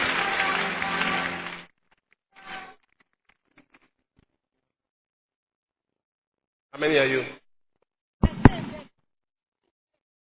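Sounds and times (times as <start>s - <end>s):
audience clapping hands: 0.0s - 1.8s
speech: 6.8s - 7.4s.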